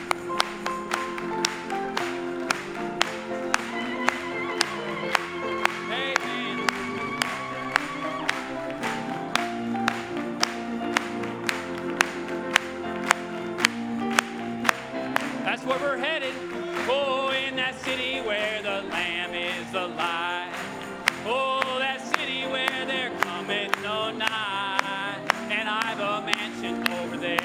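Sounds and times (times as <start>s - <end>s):
audience clapping: 0.0s - 27.4s.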